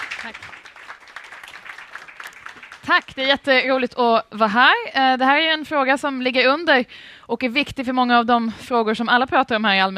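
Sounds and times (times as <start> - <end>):
audience applause: 0.0 - 3.3
speech: 0.2 - 0.7, 2.8 - 9.9.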